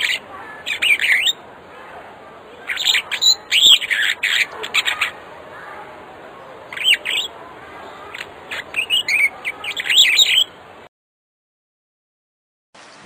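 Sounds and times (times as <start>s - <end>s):
African starling song: 0.0s - 10.9s.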